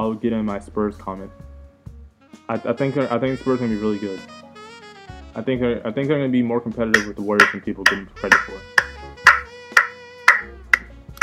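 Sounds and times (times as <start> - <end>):
speech: 0.0 - 1.5, 2.4 - 4.4, 5.4 - 8.8
sarcastic hand clapping: 7.0 - 11.2.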